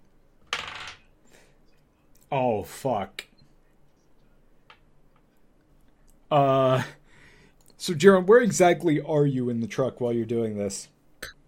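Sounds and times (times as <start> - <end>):
dice rolling on a hard table: 0.4 - 1.0
speech: 2.3 - 3.3, 6.3 - 7.0, 7.8 - 10.9.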